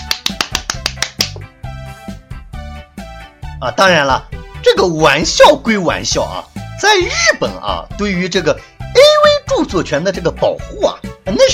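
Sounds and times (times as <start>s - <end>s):
hands clapping: 0.0s - 1.5s
speech: 3.6s - 8.7s, 9.6s - 11.5s.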